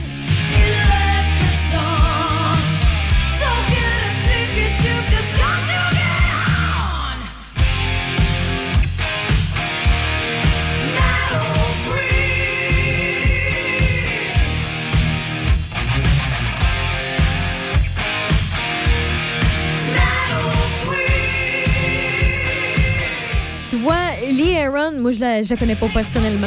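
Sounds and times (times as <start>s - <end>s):
person singing: 0.0s - 7.4s, 10.8s - 14.6s, 19.8s - 23.4s
loud driving rock song: 0.0s - 24.7s, 25.5s - 26.4s
steady pounding beat: 0.0s - 24.7s
dense distorted guitars: 0.0s - 26.4s
speech: 25.2s - 26.4s.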